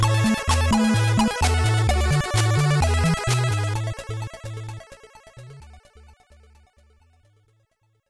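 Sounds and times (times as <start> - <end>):
level game music: 0.0 - 3.9.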